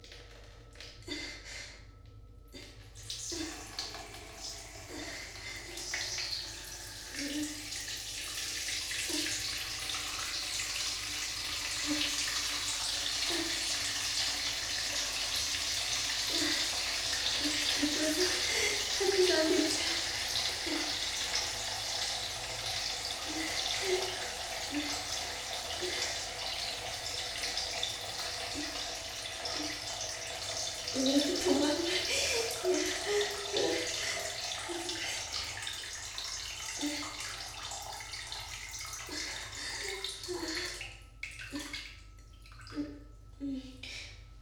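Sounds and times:
urinating into a washbasin in a bathroom, binaural: 0:00.0 - 0:44.3.

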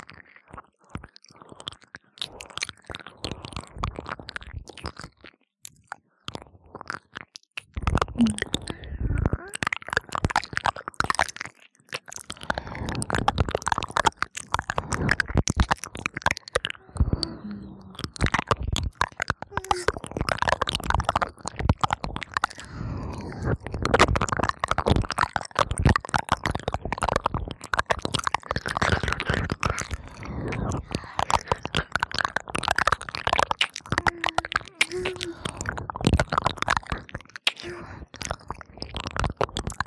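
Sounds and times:
licking of both ears: 0:08.0 - 0:39.8.

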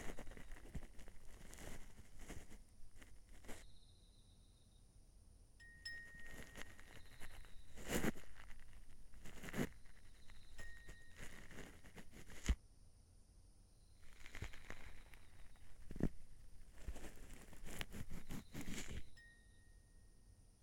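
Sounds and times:
ear cleaning ASMR in the left ear: 0:00.0 - 0:03.6, 0:06.0 - 0:12.6, 0:14.0 - 0:19.1.

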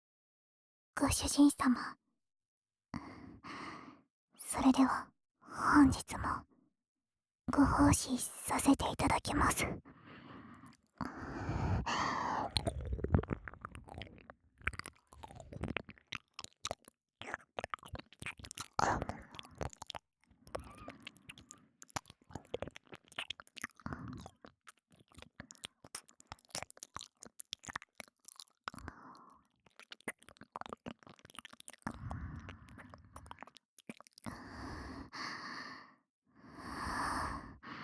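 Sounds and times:
speech: 0:01.0 - 0:02.0, 0:04.5 - 0:06.5, 0:07.5 - 0:10.0
wet ear-licking ASMR mouth sounds: 0:10.6 - 0:34.9.

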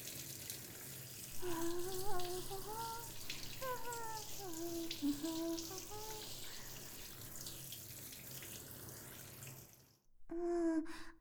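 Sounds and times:
water rinsing off soap foam: 0:00.0 - 0:10.0
person humming softly: 0:01.4 - 0:06.8, 0:10.3 - 0:11.2.

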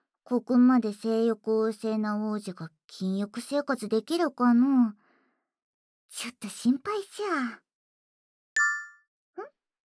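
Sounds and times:
speech: 0:00.3 - 0:05.0, 0:06.1 - 0:07.6
Princess Connect app notification chime on a phone: 0:08.6 - 0:09.0.

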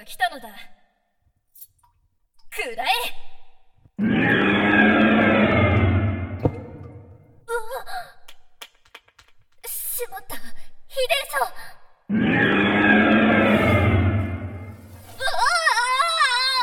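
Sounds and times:
underground cave ambience: 0:04.0 - 0:07.4, 0:12.1 - 0:16.6.

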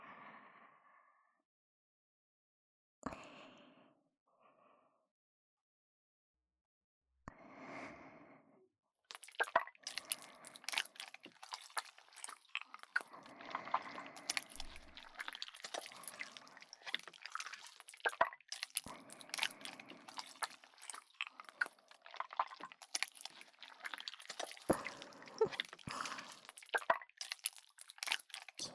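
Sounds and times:
lotion body massage for ASMR: 0:09.1 - 0:28.7.

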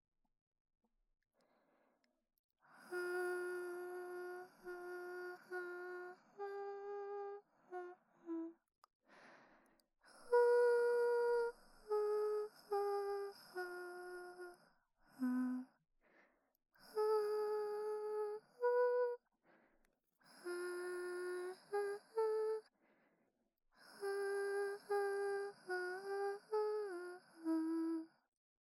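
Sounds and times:
person singing a lullaby: 0:02.8 - 0:08.6, 0:10.2 - 0:15.7, 0:16.9 - 0:19.2, 0:20.3 - 0:22.7, 0:23.8 - 0:28.1.

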